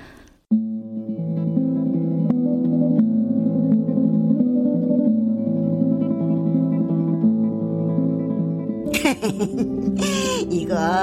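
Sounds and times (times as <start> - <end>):
recorded electric guitar playing effects-laden chords with chorus shimmer: 0.5 - 11.0
laughter: 8.9 - 10.5
speech: 9.2 - 9.7.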